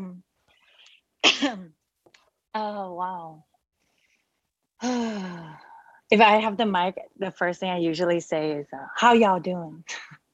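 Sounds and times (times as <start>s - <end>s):
person coughing: 1.2s - 1.7s
speech: 1.4s - 1.8s, 2.6s - 3.5s, 4.8s - 10.2s.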